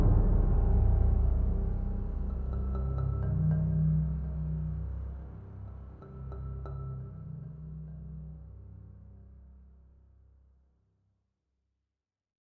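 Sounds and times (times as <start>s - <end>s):
space battle music: 0.0s - 8.8s.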